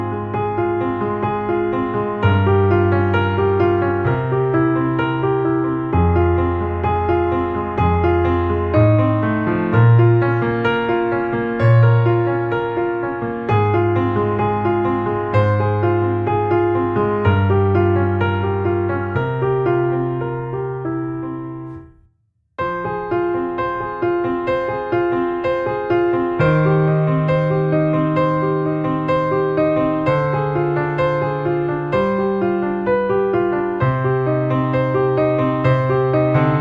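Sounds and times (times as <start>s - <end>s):
gentle intimate flowing piano music: 0.0s - 22.0s, 22.6s - 36.5s.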